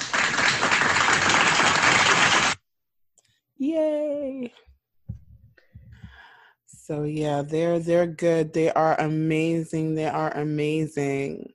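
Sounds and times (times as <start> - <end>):
crowd applause: 0.0 - 2.6
speech: 6.9 - 11.5.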